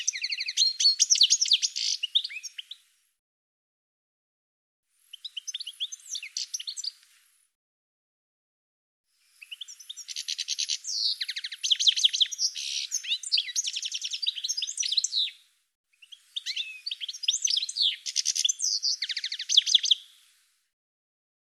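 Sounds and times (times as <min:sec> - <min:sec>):
bird twittering: 0:00.0 - 0:02.8, 0:09.4 - 0:15.4, 0:16.0 - 0:20.1.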